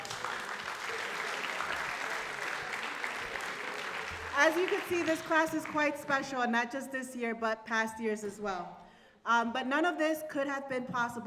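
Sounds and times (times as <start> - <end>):
applause: 0.0 - 6.1
speech: 4.4 - 11.2.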